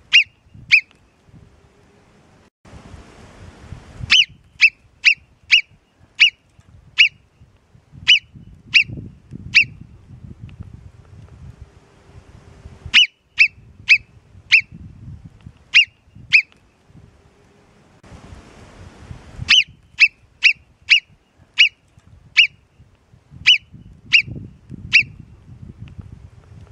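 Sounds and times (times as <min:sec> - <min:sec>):
Alpine marmot Marmota marmota giving shrill whistles: 0:00.1 - 0:00.9, 0:04.1 - 0:06.4, 0:07.0 - 0:07.2, 0:08.1 - 0:09.8, 0:12.9 - 0:14.8, 0:15.7 - 0:16.5, 0:19.5 - 0:21.8, 0:22.4 - 0:22.6, 0:23.4 - 0:25.2.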